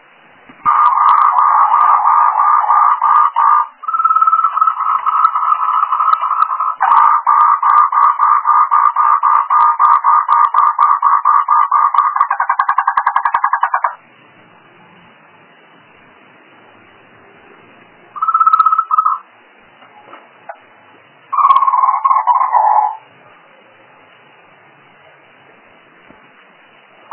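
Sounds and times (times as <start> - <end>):
frog: 0.6 - 14.0, 18.2 - 19.3, 21.3 - 23.1.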